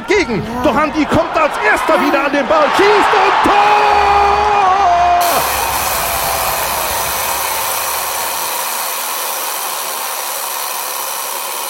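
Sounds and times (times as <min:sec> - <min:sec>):
speech: 0:00.2 - 0:04.1
alarm clock ringing: 0:05.2 - 0:11.6.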